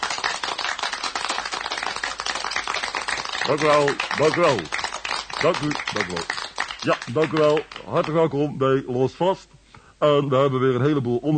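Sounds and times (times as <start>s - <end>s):
steady crowd applause: 0.0s - 8.2s
speech: 3.4s - 4.8s, 5.4s - 11.3s.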